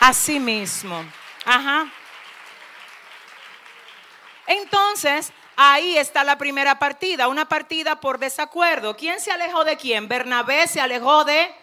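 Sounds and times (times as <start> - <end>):
speech: 0.1 - 2.0, 4.5 - 11.6
audience applause: 0.2 - 6.1.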